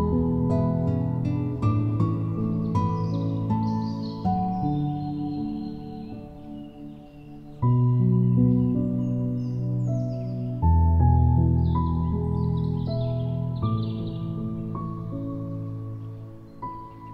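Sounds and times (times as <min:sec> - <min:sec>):
birds singing: 0:00.0 - 0:17.1
relaxing guitar music: 0:00.0 - 0:17.1
relaxing light piano music: 0:00.0 - 0:17.1.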